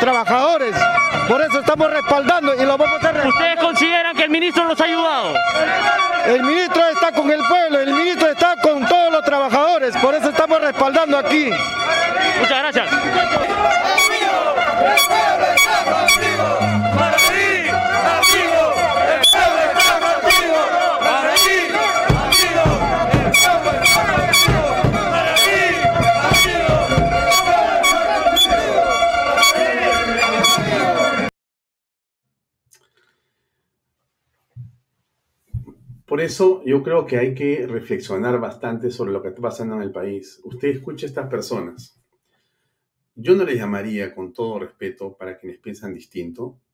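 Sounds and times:
speech: 0:00.0 - 0:09.0, 0:36.3 - 0:42.0, 0:43.2 - 0:46.7
crowd of protesters chanting and shouting: 0:00.0 - 0:31.3
horn blasts: 0:00.0 - 0:31.3
faint thumps: 0:13.3 - 0:29.0.

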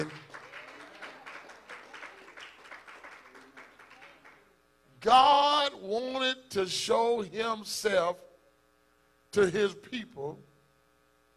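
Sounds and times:
audience clapping hands: 0:00.0 - 0:04.6
speech: 0:05.0 - 0:08.3, 0:09.3 - 0:10.5.

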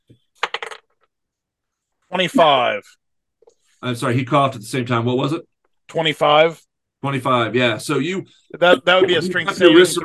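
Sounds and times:
dice clattering across a hard surface: 0:00.4 - 0:01.0
speech: 0:02.1 - 0:03.0, 0:03.8 - 0:10.0
laughter: 0:08.5 - 0:10.0.

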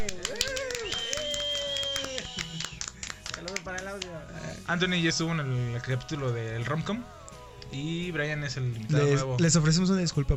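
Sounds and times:
voices whooping and cheering: 0:00.0 - 0:02.8
applause welcoming guests: 0:00.0 - 0:04.2
speech: 0:04.7 - 0:10.3.

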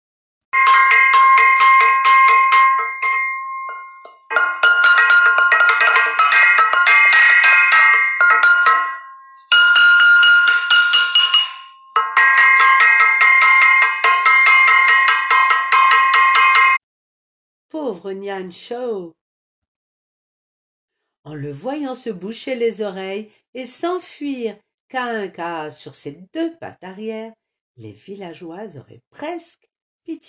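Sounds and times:
pots, lids and spoons being banged together: 0:00.6 - 0:16.8
speech: 0:18.1 - 0:19.2, 0:21.3 - 0:30.2.

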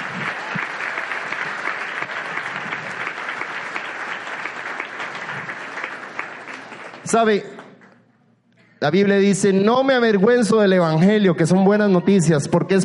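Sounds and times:
audience applause: 0:00.0 - 0:07.7
speech: 0:07.1 - 0:07.6, 0:08.8 - 0:12.8.

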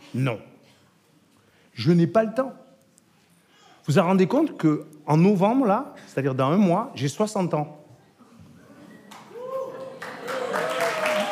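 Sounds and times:
speech: 0:00.1 - 0:00.5, 0:01.8 - 0:02.6, 0:03.9 - 0:07.8
audience applause: 0:09.1 - 0:11.3.

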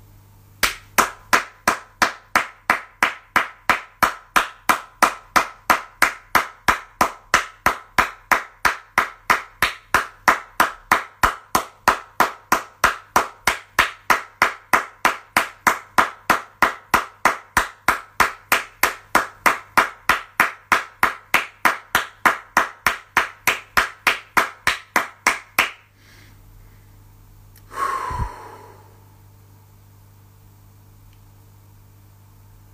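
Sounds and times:
rhythmic hand clapping: 0:00.6 - 0:25.9.

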